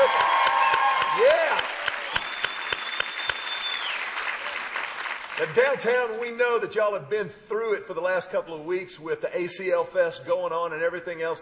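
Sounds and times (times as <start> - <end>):
church congregation clapping: 0.0 - 6.4
speech: 5.5 - 11.3.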